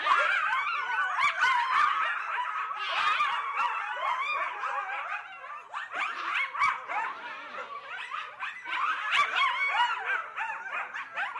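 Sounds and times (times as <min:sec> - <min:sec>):
coyote pack yip-howling: 0:00.0 - 0:11.3.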